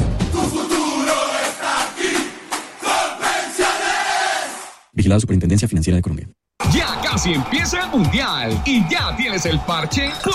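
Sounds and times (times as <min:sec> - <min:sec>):
stadium crowd cheering: 0:00.3 - 0:04.8, 0:06.6 - 0:10.3
speech: 0:05.0 - 0:10.3.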